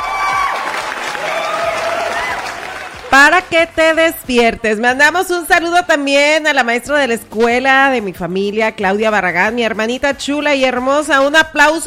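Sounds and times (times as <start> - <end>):
crowd cheering: 0.0 - 3.4
applause sound effect, crowd clapping: 0.0 - 4.0
speech: 3.2 - 11.8.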